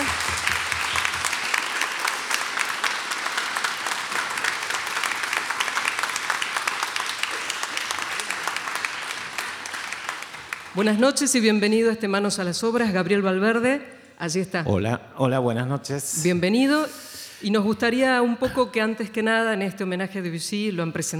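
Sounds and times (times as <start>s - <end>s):
audience applause: 0.0s - 10.8s
speech: 10.8s - 21.1s.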